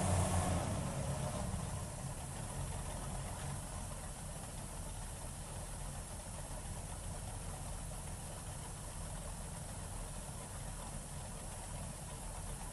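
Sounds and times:
Scarab 34 boat engine accelerating: 0.0s - 3.9s
Scarab 34 boat engine starting onboard: 0.0s - 12.7s.

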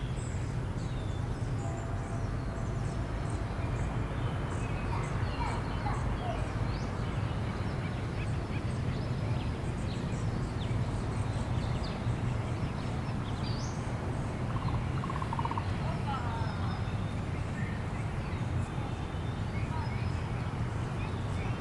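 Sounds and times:
birds in a residential park: 0.0s - 21.6s
wind in a residential park: 0.0s - 21.6s
children playing in a residential park: 4.8s - 6.5s.

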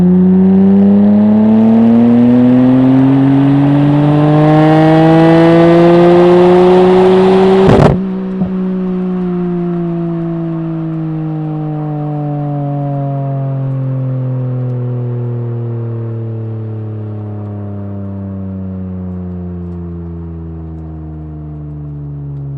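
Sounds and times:
Nissan R33 Skyline exhaust on ramps during drive: 0.0s - 16.3s.

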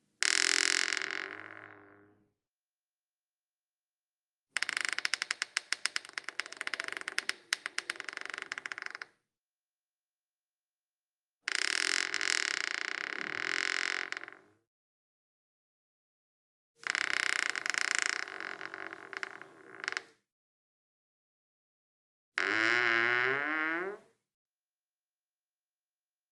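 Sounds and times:
wood door squeaking and creaking: 0.2s - 2.1s, 4.6s - 9.2s, 11.5s - 14.6s, 16.8s - 20.2s, 22.4s - 24.1s.

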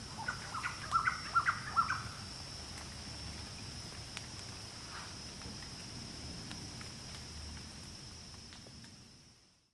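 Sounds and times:
many birds dropping from trees in afternoon jungle, Khao Yai National Park, Korat, Thailand: 0.0s - 2.4s.

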